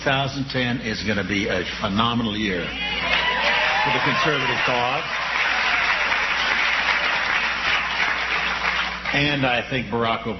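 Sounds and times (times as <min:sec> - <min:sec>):
speech: 0:00.0 - 0:03.1, 0:03.8 - 0:05.2, 0:09.1 - 0:10.3
crowd cheering and applauding: 0:02.9 - 0:09.1.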